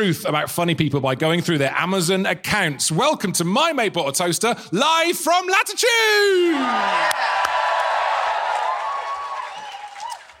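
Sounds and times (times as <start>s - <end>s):
speech: 0.0s - 7.6s
live audience cheering through masks: 6.5s - 10.3s.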